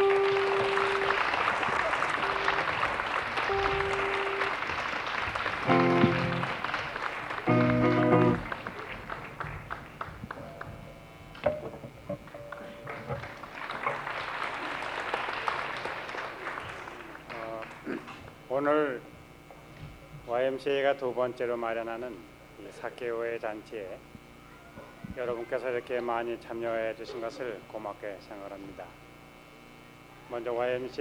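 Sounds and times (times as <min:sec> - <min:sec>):
brief tonal blips: 0:00.0 - 0:01.2, 0:02.2 - 0:02.8, 0:03.5 - 0:04.6
audience applause: 0:00.0 - 0:10.9, 0:12.2 - 0:18.2
speech: 0:20.6 - 0:24.2, 0:25.2 - 0:29.1, 0:30.3 - 0:30.9.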